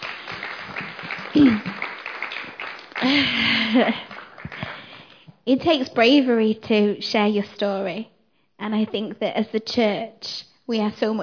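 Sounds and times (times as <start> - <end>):
crowd applauding: 0.0 - 5.2
speech: 1.3 - 1.8, 3.0 - 4.1, 5.5 - 11.2.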